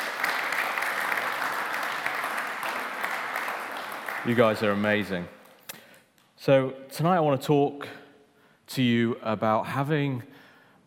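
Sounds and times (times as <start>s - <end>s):
audience applause: 0.0s - 5.3s
speech: 4.2s - 5.4s, 6.4s - 8.0s, 8.7s - 10.3s.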